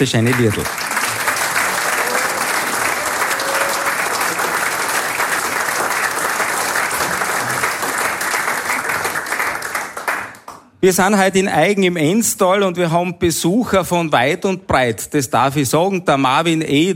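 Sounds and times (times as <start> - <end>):
speech: 0.0 - 0.9, 10.8 - 16.9
audience applause for a choir: 0.0 - 10.7.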